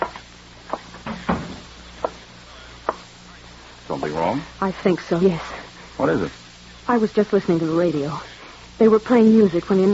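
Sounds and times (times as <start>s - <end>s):
door closing: 1.0s - 1.7s
speech: 4.2s - 9.9s.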